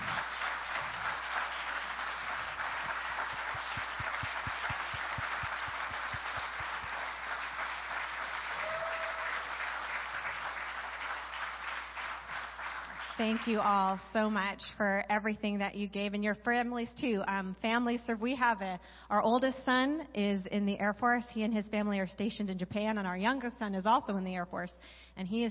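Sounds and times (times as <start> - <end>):
audience applause: 0.0 - 13.6
speech: 13.2 - 25.5.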